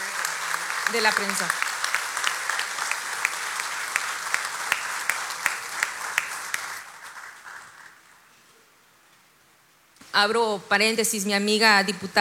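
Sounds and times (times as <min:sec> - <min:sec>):
audience applause: 0:00.0 - 0:08.1
speech: 0:00.9 - 0:01.7, 0:10.2 - 0:12.2.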